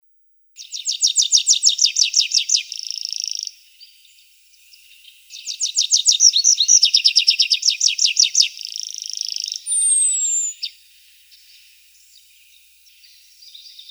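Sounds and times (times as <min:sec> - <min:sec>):
Tree pipit song: 0:00.6 - 0:13.8.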